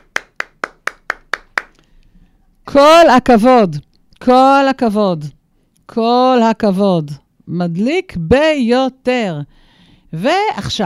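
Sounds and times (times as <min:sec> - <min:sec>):
sharp hand claps honouring someone: 0:00.0 - 0:01.9
speech: 0:02.7 - 0:10.8.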